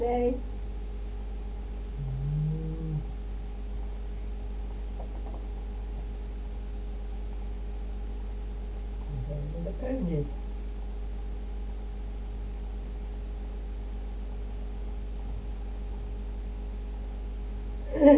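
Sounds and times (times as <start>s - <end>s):
steady hum: 0.0s - 18.1s
cow mooing: 2.0s - 3.2s.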